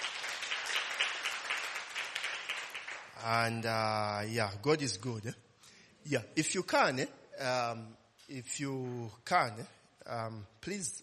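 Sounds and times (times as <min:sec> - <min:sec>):
audience applause: 0:00.0 - 0:03.3
speech: 0:03.2 - 0:05.4, 0:06.0 - 0:11.0.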